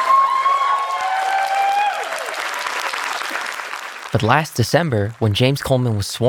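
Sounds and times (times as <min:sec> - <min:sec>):
whoops or whistle-like cries: 0:00.0 - 0:03.5
crowd applauding and cheering after a swearing-in: 0:00.0 - 0:06.0
speech: 0:04.2 - 0:06.2.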